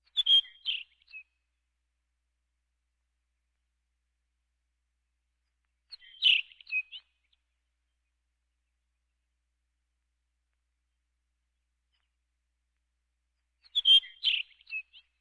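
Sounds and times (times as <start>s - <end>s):
birds: 0.0s - 1.6s, 5.4s - 15.1s.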